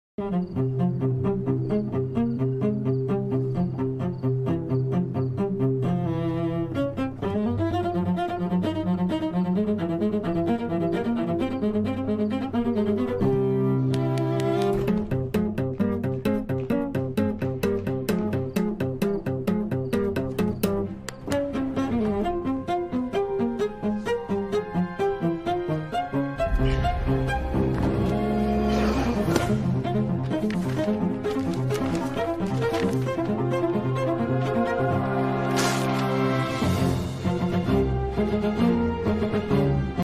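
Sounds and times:
cello playing: 0.2 - 40.0.

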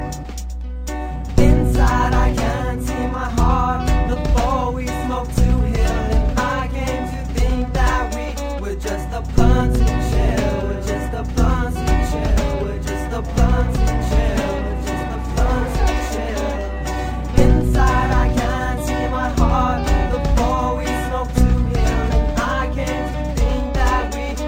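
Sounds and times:
chill rhythm ringtone: 0.0 - 24.4.

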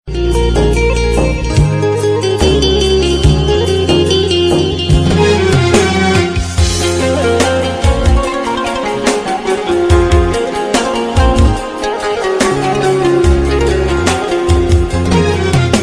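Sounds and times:
Arabic melody ringtone: 0.1 - 15.8.

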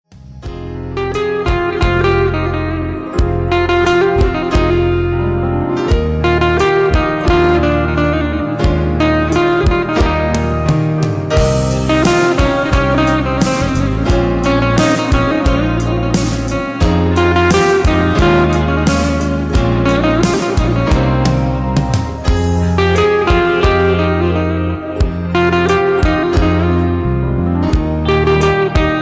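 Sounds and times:
Turkish music: 0.0 - 29.0.

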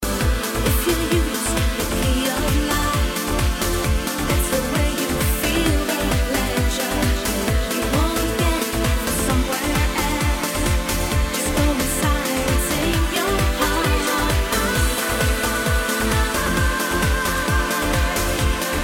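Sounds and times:
trance ringtone: 0.0 - 18.8.

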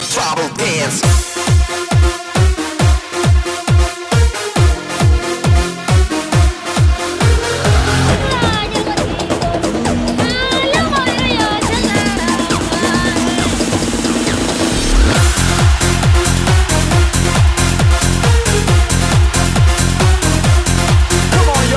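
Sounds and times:
tribal dance music: 0.0 - 21.7.

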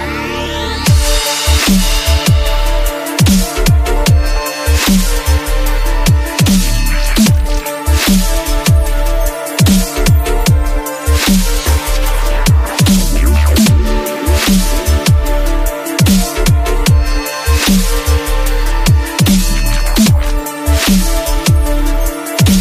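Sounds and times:
electronica dub music: 0.2 - 22.5.

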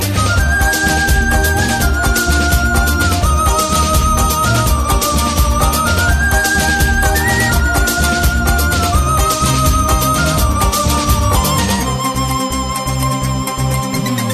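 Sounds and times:
romantic remix music: 0.0 - 14.3.

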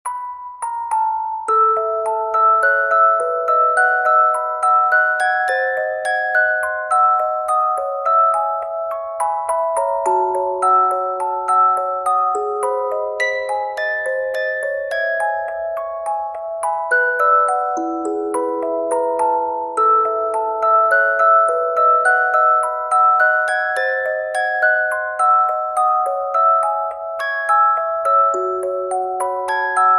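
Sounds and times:
music box: 0.0 - 29.9.

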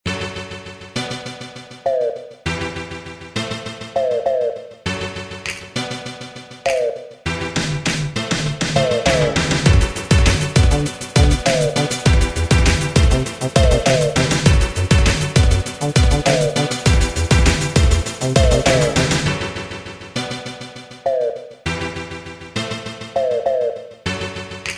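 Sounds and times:
90s pipe dance music: 3.6 - 21.6, 23.0 - 24.7.

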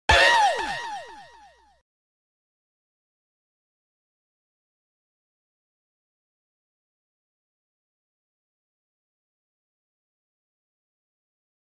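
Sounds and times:
bow notification sound: 0.1 - 1.2.

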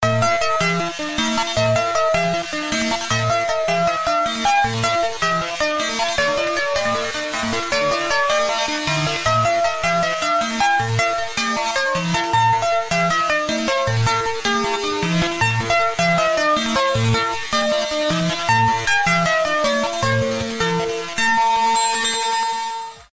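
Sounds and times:
8-bit music: 0.0 - 23.1.

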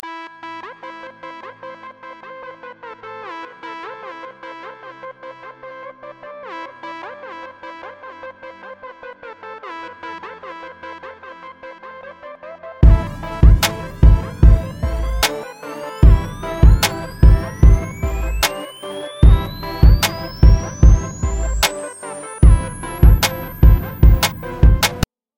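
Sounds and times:
tone: 12.8 - 25.1.

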